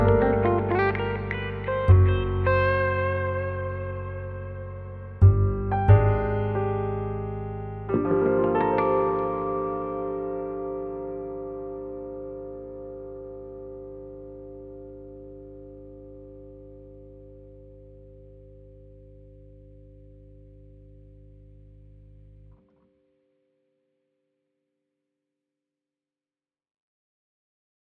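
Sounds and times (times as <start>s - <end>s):
jazz solo game over music: 0.0s - 11.2s.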